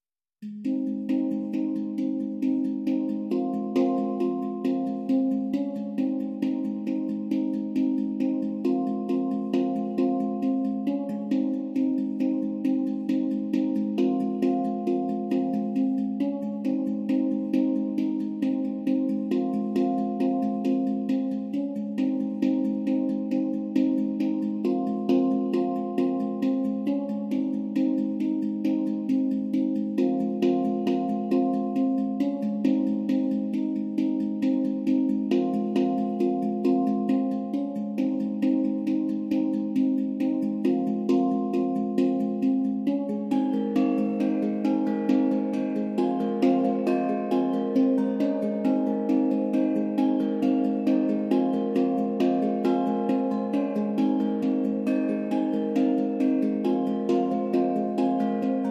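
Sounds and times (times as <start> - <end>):
hang drum: 0.4 - 58.6.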